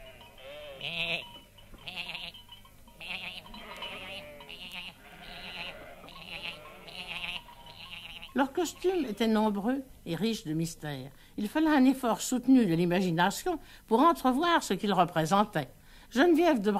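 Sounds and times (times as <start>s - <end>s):
theatre actors in the wings imitating goat bleats: 3.1s - 9.3s
speech: 8.4s - 16.7s.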